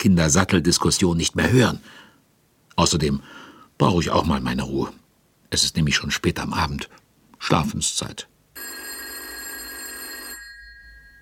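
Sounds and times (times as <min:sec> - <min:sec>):
speech: 0:00.0 - 0:02.1, 0:02.8 - 0:08.8
telephone ringing: 0:08.6 - 0:11.2.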